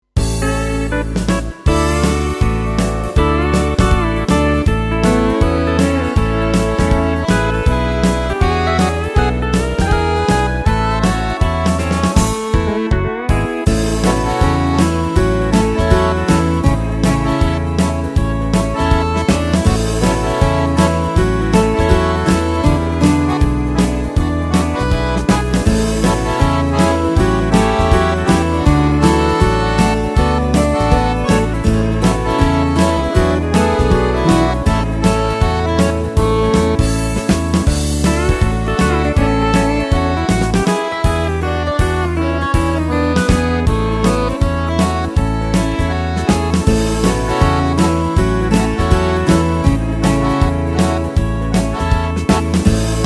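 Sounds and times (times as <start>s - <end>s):
country swing music: 0.1s - 53.0s.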